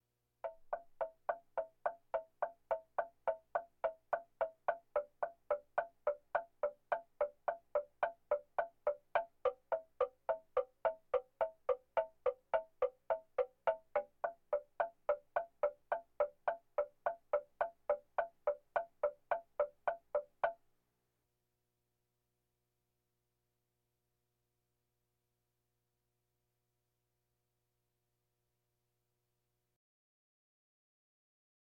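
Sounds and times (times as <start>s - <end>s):
bongos: 0.4s - 20.6s.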